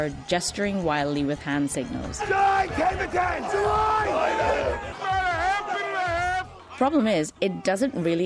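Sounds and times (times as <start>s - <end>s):
speech: 0.0s - 5.1s, 6.8s - 8.2s
floor traders shouting over one another in an open outcry pit: 2.2s - 8.0s.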